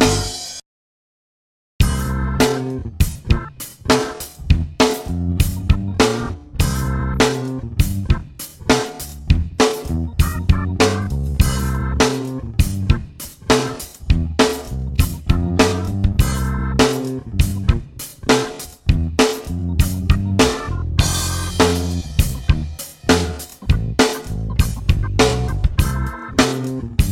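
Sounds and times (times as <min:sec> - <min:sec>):
funk backing track without guitar: 0:00.0 - 0:00.6, 0:01.8 - 0:27.0.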